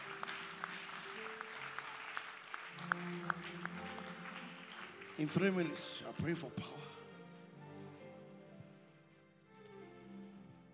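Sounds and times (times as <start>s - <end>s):
audience clapping: 0.0s - 6.8s
speech: 5.2s - 6.9s.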